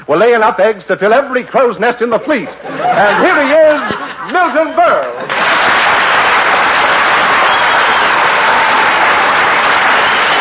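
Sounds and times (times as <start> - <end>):
speech: 0.1 - 5.6
laughter: 2.2 - 5.5
large studio audience applause: 4.7 - 10.4.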